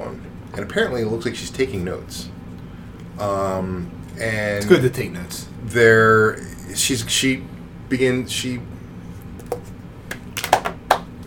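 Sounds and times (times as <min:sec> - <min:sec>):
low hum: 0:00.0 - 0:11.2
speech: 0:00.6 - 0:02.4, 0:03.2 - 0:08.8
drawn-out vocal sounds: 0:06.2 - 0:06.8
slow clap: 0:10.1 - 0:11.2.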